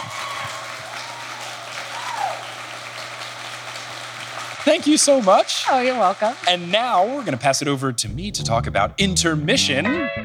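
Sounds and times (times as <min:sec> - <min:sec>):
audience applause at a live show in San Francisco: 0:00.0 - 0:07.9
speech: 0:04.7 - 0:10.2.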